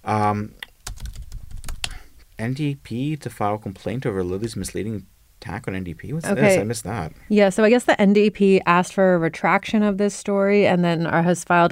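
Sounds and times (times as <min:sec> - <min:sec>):
speech: 0:00.0 - 0:00.6, 0:02.4 - 0:11.7
keyboard typing a search into Google: 0:00.8 - 0:02.0.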